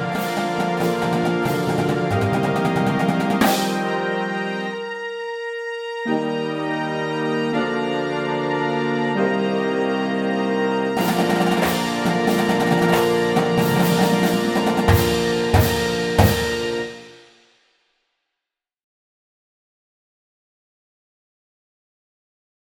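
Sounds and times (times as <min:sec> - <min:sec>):
brass fanfare: 0:00.0 - 0:17.5.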